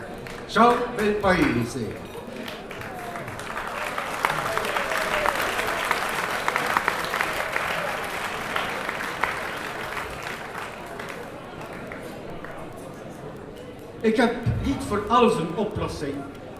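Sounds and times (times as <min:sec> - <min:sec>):
standing ovation applause in concert hall: 0:00.0 - 0:12.7
speech: 0:00.5 - 0:02.1, 0:14.0 - 0:16.4.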